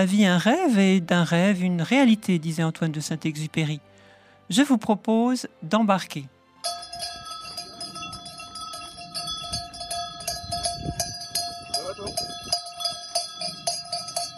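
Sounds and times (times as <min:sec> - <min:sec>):
speech: 0:00.0 - 0:07.1
small bells tinkling on ewes walking through town streets: 0:06.6 - 0:14.3.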